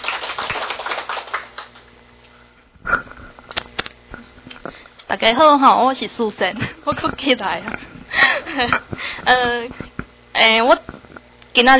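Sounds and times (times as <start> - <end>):
audience applause: 0.0 - 1.9
speech: 5.2 - 7.8, 8.5 - 9.8, 10.4 - 10.9, 11.6 - 11.7.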